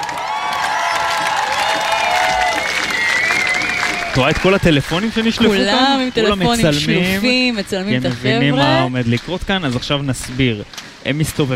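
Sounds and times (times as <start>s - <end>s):
crowd applauding: 0.0s - 11.5s
high whistles: 0.8s - 4.6s
speech: 4.2s - 11.5s.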